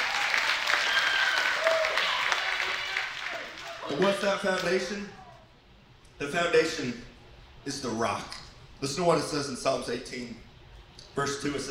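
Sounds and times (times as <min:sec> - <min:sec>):
audience applause: 0:00.0 - 0:04.8
speech: 0:03.9 - 0:05.2, 0:06.2 - 0:10.5, 0:11.2 - 0:11.6.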